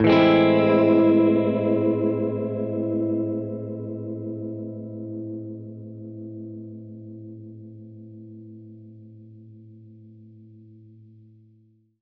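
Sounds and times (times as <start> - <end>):
Gretsch guitar A minor major seventh chord: 0.0 - 7.5.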